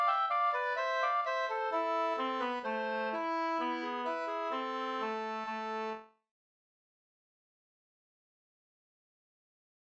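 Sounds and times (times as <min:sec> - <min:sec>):
Swedish folk walking tune: 0:00.0 - 0:06.2.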